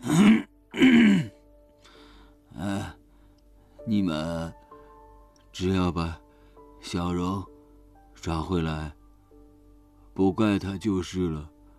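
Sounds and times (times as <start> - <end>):
old man groaning: 0.0 - 1.4
speech: 3.9 - 4.6, 5.6 - 6.2, 6.8 - 7.5, 8.2 - 9.0, 10.2 - 11.5.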